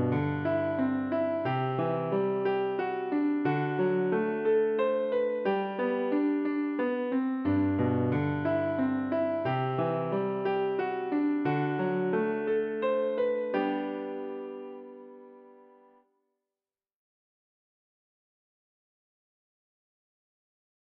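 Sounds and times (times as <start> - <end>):
piano: 0.0 - 16.1.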